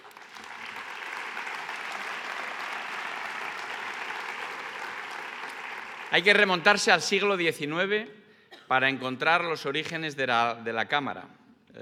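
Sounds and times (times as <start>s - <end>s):
room full of people applauding: 0.0s - 7.4s
speech: 6.1s - 11.7s.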